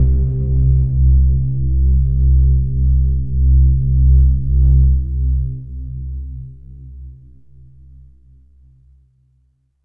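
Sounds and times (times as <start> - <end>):
overlay drone: 0.0 - 5.6.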